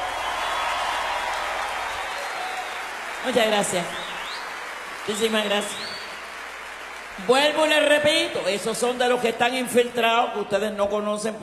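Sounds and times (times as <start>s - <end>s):
audience applause: 0.0s - 9.2s
speech: 3.2s - 4.0s, 5.0s - 5.9s, 7.2s - 11.4s.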